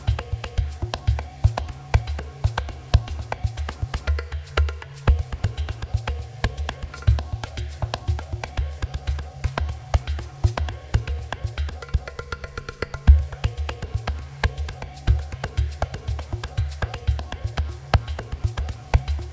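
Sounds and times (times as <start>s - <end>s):
percussion: 0.0s - 19.3s.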